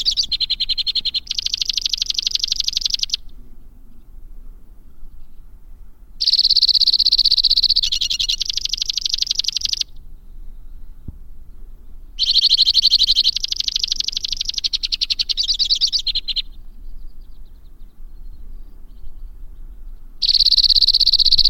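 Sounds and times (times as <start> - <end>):
white-winged crossbill delivering rapid high rattling trills: 0.0 - 3.4, 6.2 - 10.0, 12.2 - 18.3, 19.6 - 21.4.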